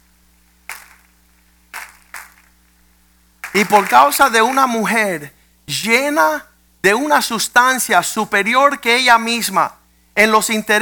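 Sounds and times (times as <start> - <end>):
audience clapping: 0.7 - 2.7, 3.4 - 4.9
speech: 3.6 - 10.7.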